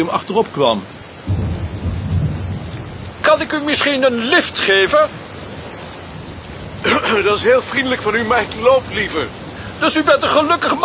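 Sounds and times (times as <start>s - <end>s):
speech: 0.0s - 1.0s, 3.3s - 5.2s, 7.0s - 10.8s
steady rain: 0.0s - 10.8s
deep sustained rumble: 1.3s - 3.4s.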